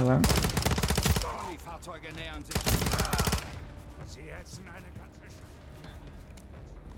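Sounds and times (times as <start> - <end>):
video game automatic gunfire: 0.1 - 1.5, 2.4 - 3.6.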